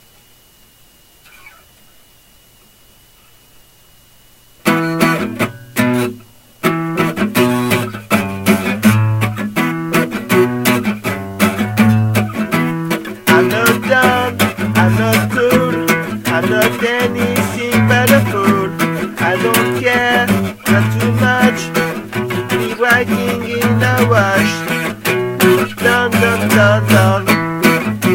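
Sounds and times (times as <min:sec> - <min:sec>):
acoustic session music: 0:04.6 - 0:28.1.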